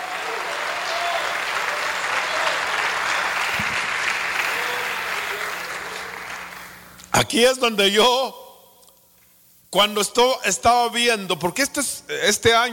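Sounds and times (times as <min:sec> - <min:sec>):
audience applause: 0:00.0 - 0:06.8
speech: 0:07.2 - 0:08.4, 0:09.7 - 0:12.7.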